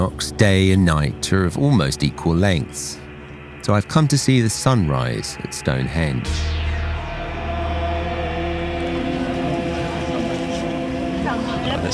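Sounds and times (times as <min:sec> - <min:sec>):
speech: 0:00.0 - 0:03.0, 0:03.7 - 0:06.6
temple gong or singing bowl tones: 0:04.9 - 0:11.9.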